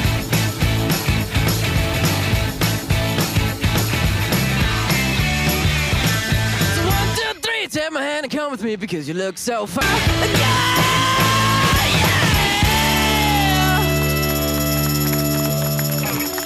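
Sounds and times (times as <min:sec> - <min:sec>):
steady pounding drum beat: 0:00.0 - 0:07.2, 0:09.8 - 0:15.9
loud rock song: 0:00.0 - 0:07.9, 0:09.5 - 0:16.4
sung lead vocal: 0:06.7 - 0:08.5, 0:09.2 - 0:14.0
speech: 0:08.5 - 0:11.1.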